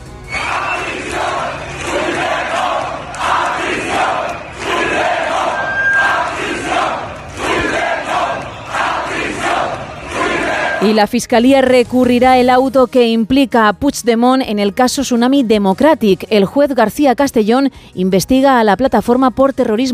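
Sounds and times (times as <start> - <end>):
protest crowd shouting chants: 0.3 - 11.0
speech: 10.8 - 19.9.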